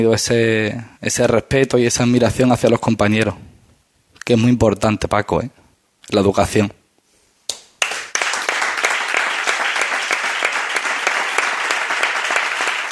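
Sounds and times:
speech: 0.0 - 3.5, 4.3 - 6.8
audience applause: 7.8 - 12.9.

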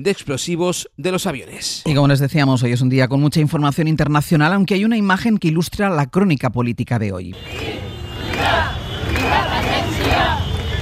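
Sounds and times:
speech: 0.0 - 8.6
crowd chanting at independence demonstration: 7.4 - 10.7.

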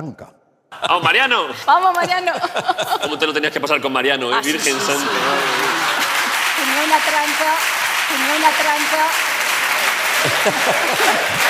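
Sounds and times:
speech: 0.0 - 5.9, 6.8 - 9.3, 10.2 - 11.4
laughter: 0.7 - 7.4, 9.4 - 11.4
crowd voices: 4.3 - 11.4
audience applauding: 4.4 - 11.4.

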